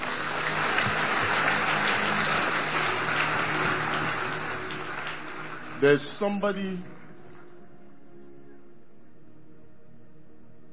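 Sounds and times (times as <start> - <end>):
audience clapping hands: 0.0 - 7.6
speech: 5.8 - 7.0.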